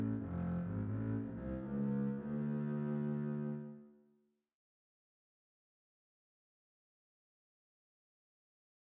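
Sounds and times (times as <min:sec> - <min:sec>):
double bass playing an adagietto: 0:00.0 - 0:03.8.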